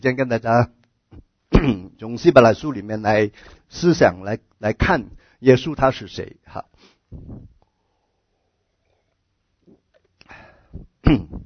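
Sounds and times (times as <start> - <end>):
speech: 0.0 - 7.5, 10.8 - 11.4
man coughing: 10.8 - 11.4.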